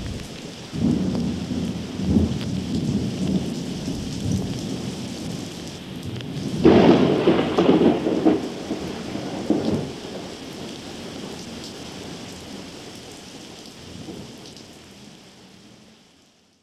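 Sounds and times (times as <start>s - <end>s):
thunderstorm: 0.0s - 12.7s.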